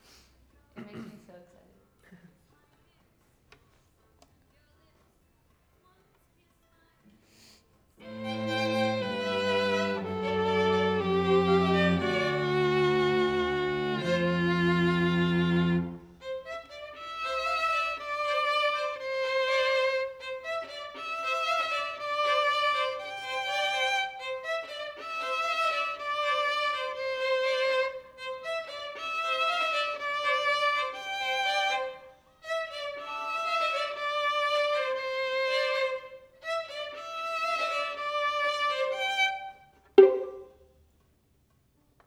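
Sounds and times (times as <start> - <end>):
violin: 8.0 - 40.6.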